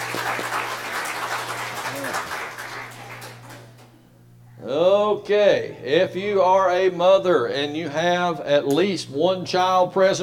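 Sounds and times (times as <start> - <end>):
audience applause: 0.0 - 3.7
low electrical hum: 0.0 - 10.2
speech: 5.2 - 10.2.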